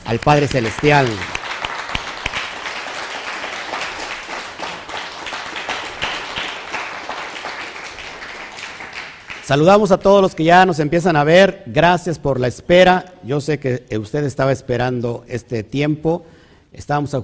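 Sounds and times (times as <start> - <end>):
applause ovation: 0.0 - 9.7
speech: 0.1 - 1.3, 9.5 - 17.2.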